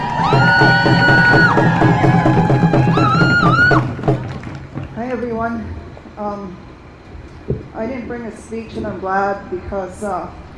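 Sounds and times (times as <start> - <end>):
high whooping cries: 0.0 - 4.0
crowd applauding and cheering for a speaker: 0.0 - 5.0
speech: 0.2 - 2.5, 5.4 - 6.7, 7.8 - 10.5.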